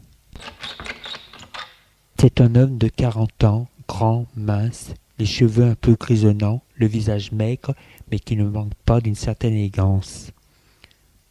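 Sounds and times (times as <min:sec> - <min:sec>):
door opening with latch and hinge clatter: 0:00.4 - 0:01.9
speech: 0:02.2 - 0:10.4.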